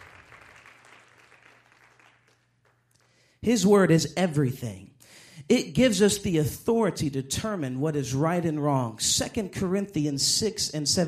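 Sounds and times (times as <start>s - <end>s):
audience clapping: 0.0s - 3.3s
speech: 3.4s - 4.9s, 5.5s - 11.0s.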